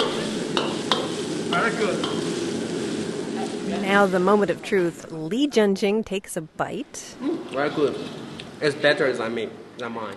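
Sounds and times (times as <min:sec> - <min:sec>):
stir-frying chicken in a wok: 0:00.0 - 0:04.7
speech: 0:01.7 - 0:02.2, 0:03.9 - 0:10.1.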